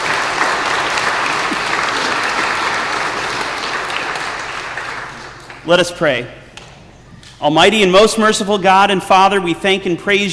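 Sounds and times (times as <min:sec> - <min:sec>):
audience applause: 0:00.0 - 0:05.6
speech: 0:05.7 - 0:06.4, 0:07.4 - 0:10.3.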